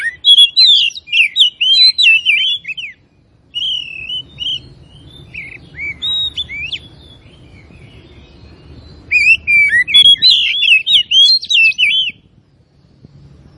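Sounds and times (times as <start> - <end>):
Oriental magpie-robin singing: 0.0 - 12.4.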